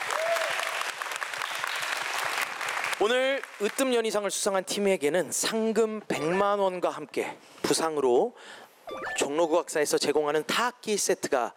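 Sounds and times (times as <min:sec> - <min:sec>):
crowd applause: 0:00.0 - 0:03.0
speech: 0:03.0 - 0:11.5.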